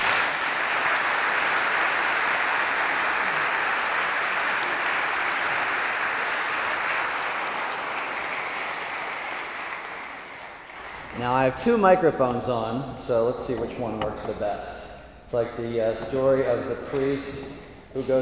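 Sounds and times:
audience applause welcoming Father Jim Martin: 0:00.0 - 0:11.5
speech: 0:11.2 - 0:18.1.

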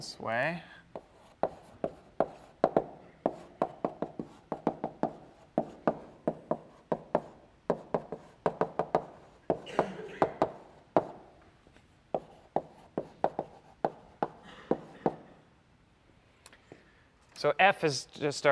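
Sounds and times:
speech: 0:00.0 - 0:00.8, 0:17.4 - 0:18.4
writing on a board during a lecture: 0:01.0 - 0:11.3, 0:12.2 - 0:15.2.

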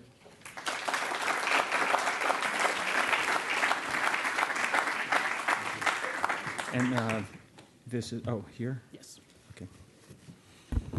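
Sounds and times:
audience applause: 0:00.4 - 0:07.4
speech: 0:06.7 - 0:09.8.

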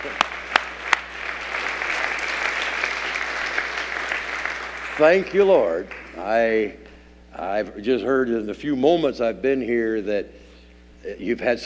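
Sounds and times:
audience applause: 0:00.0 - 0:06.7
speech: 0:05.0 - 0:10.4, 0:11.0 - 0:11.6.

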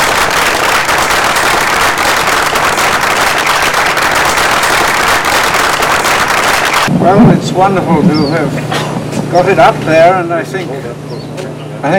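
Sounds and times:
audience applause: 0:00.0 - 0:06.9
speech: 0:07.1 - 0:11.9.

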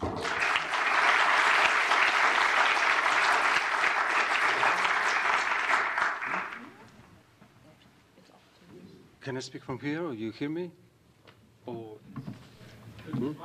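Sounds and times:
audience applause welcoming two speakers: 0:00.0 - 0:06.8
speech: 0:09.3 - 0:10.8.

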